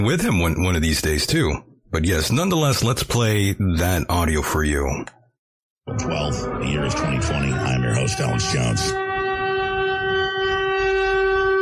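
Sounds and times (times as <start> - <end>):
speech: 0.0 - 5.2, 5.9 - 9.1
siren: 5.9 - 11.6.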